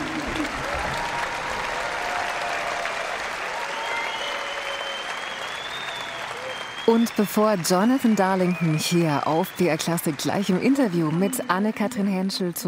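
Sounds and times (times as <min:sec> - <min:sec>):
audience applause after orchestra performance: 0:00.0 - 0:12.4
speech: 0:06.9 - 0:12.6.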